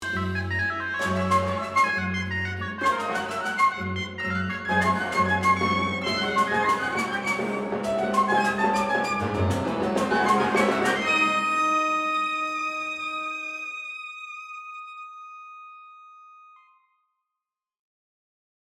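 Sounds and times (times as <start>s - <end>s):
piano: 0.0s - 13.5s
harp: 0.0s - 15.9s
EWI electronic wind instrument: 0.0s - 16.8s
flute: 0.0s - 16.8s.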